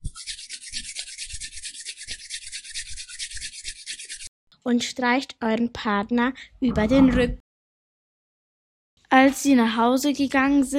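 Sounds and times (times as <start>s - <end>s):
hands rubbing together: 0.0s - 4.3s
speech: 4.6s - 7.4s, 9.1s - 10.7s.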